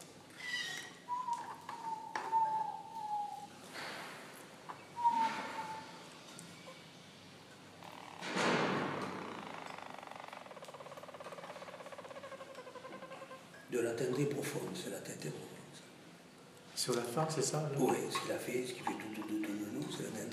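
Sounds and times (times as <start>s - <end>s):
faint noise: 0.0s - 20.3s
Harz canary singing: 0.4s - 3.5s, 4.9s - 6.0s
speech: 13.8s - 15.6s, 16.8s - 20.3s.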